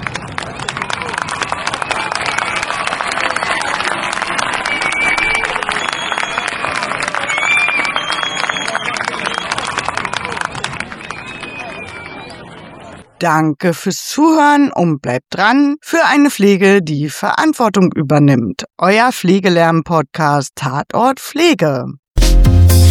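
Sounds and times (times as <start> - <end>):
applause and cheering: 0.0 - 13.1
speech: 13.2 - 22.4.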